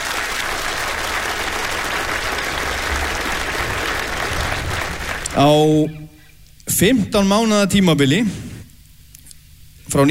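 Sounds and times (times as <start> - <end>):
audience applause: 0.0 - 5.8
speech: 5.4 - 6.0, 6.7 - 8.4, 9.9 - 10.1.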